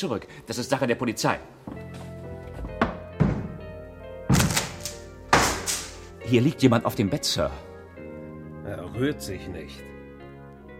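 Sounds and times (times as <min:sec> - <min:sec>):
speech: 0:00.0 - 0:02.0, 0:06.3 - 0:07.7, 0:08.7 - 0:09.9
door being forced open: 0:02.5 - 0:06.1.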